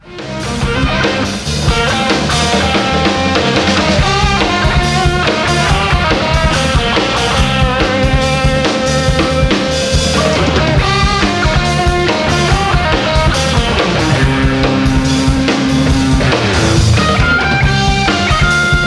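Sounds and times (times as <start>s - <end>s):
live instrumental music: 0.0s - 18.8s.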